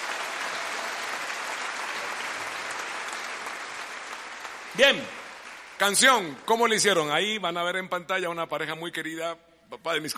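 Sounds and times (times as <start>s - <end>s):
audience applause: 0.0s - 7.0s
speech: 4.8s - 5.2s, 5.8s - 10.1s.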